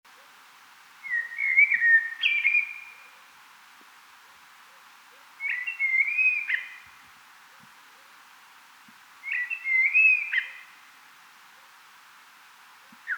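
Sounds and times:
Common blackbird singing: 0:01.0 - 0:03.0, 0:05.4 - 0:06.8, 0:09.2 - 0:10.6.

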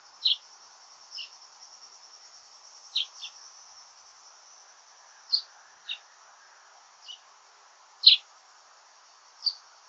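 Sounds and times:
common chaffinch Fringilla coelebs calls: 0:00.2 - 0:00.5, 0:01.1 - 0:01.4, 0:02.9 - 0:03.4, 0:05.2 - 0:06.1, 0:07.0 - 0:07.3, 0:08.0 - 0:08.3.

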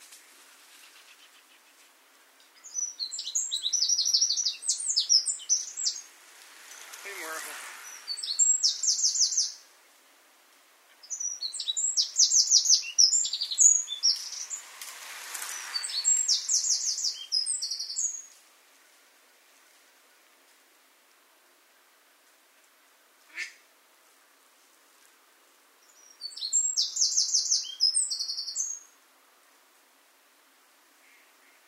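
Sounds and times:
Eurasian wren trilling song: 0:02.4 - 0:09.7, 0:10.9 - 0:14.7, 0:15.5 - 0:18.3, 0:25.8 - 0:29.0.

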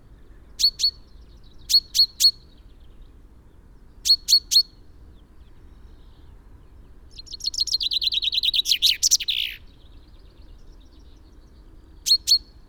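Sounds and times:
Common chaffinch Fringilla coelebs singing a fast run of chips ending in a flourish: 0:00.6 - 0:02.7, 0:07.1 - 0:11.4, 0:12.0 - 0:12.6.

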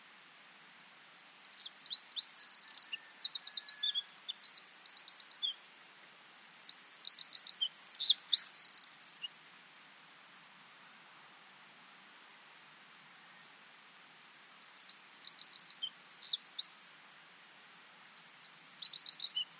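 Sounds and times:
Eurasian wren Troglodytes troglodytes song: 0:01.0 - 0:09.6, 0:14.4 - 0:17.0, 0:18.0 - 0:19.5.

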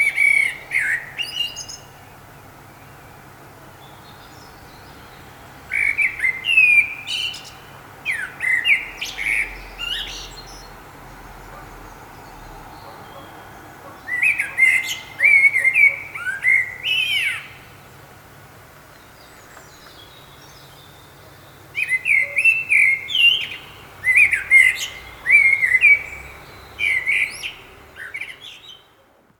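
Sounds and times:
common blackbird singing: 0:00.0 - 0:18.0, 0:18.9 - 0:29.2.

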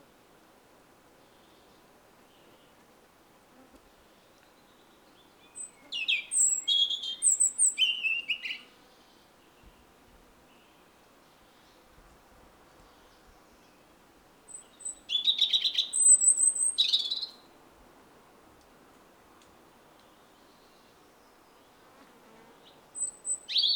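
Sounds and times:
European robin singing: 0:04.6 - 0:08.7, 0:14.5 - 0:17.4, 0:23.0 - 0:23.7.

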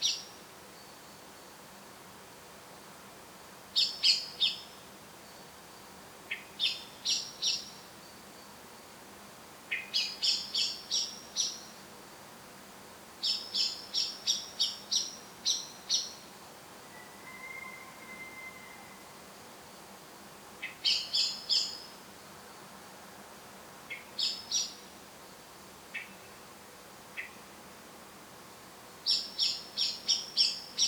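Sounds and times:
steady quiet hiss: 0:00.0 - 0:30.8
Eurasian blackbird thin drawn-out whistle: 0:16.9 - 0:19.1.

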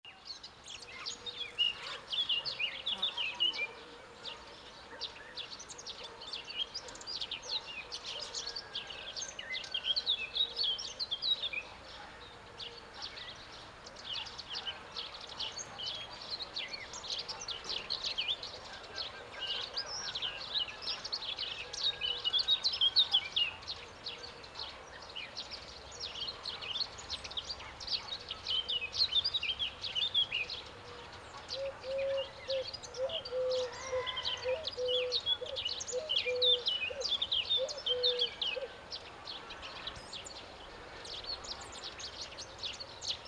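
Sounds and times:
songbird chorus: 0:00.0 - 0:43.2.

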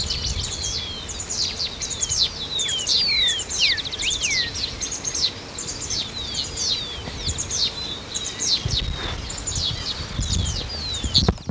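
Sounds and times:
dense bird chorus: 0:00.0 - 0:11.5.

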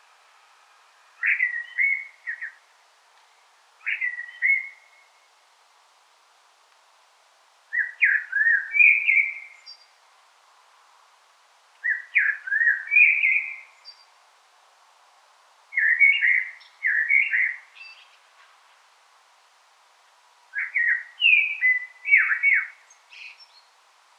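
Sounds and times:
Common blackbird song: 0:01.2 - 0:02.6, 0:03.8 - 0:05.1, 0:07.7 - 0:09.9, 0:11.8 - 0:14.1, 0:15.8 - 0:18.2, 0:20.6 - 0:23.7.

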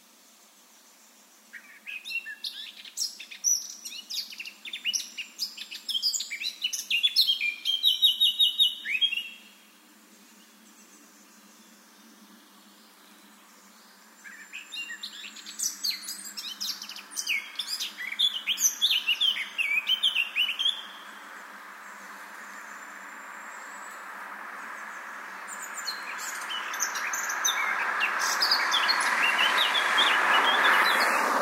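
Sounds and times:
Eurasian blackcap song: 0:01.6 - 0:09.5, 0:14.2 - 0:21.2, 0:25.3 - 0:31.3.

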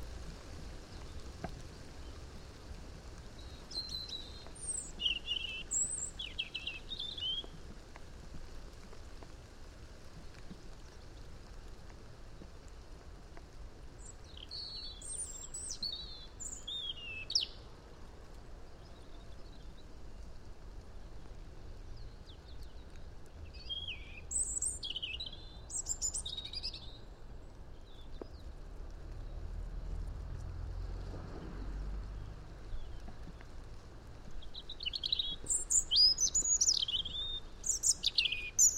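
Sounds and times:
steady rain-like hiss and patter: 0:00.0 - 0:38.7
European robin singing: 0:03.4 - 0:07.5, 0:14.0 - 0:17.7, 0:23.5 - 0:27.1, 0:34.4 - 0:38.7.

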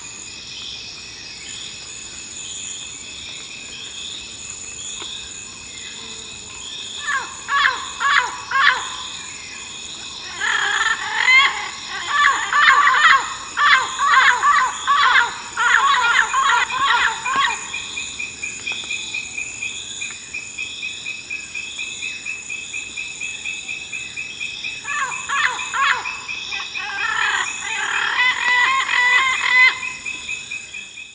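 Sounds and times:
high insect chorus: 0:00.0 - 0:31.1
harsh bird calls: 0:10.2 - 0:18.2, 0:24.8 - 0:30.3.

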